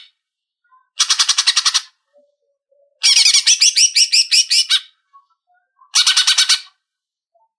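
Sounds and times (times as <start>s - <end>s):
greater green leafbird song with buzzy trills and whistled phrases: 0.8s - 6.6s.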